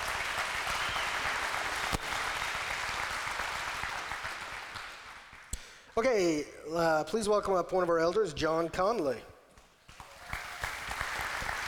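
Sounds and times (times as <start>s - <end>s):
audience applause for a speaker: 0.0s - 5.5s, 10.0s - 11.6s
speech: 6.0s - 9.3s.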